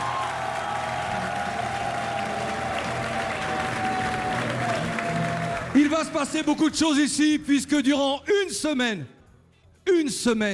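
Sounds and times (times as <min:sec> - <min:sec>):
audience applause: 0:00.0 - 0:06.5
speech: 0:05.8 - 0:09.2, 0:09.9 - 0:10.5.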